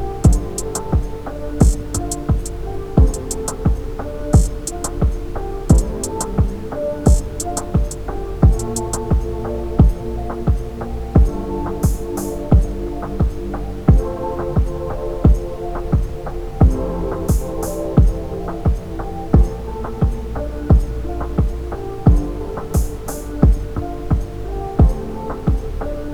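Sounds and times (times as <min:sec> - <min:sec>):
ambient music for chakra meditation: 0:00.0 - 0:26.1.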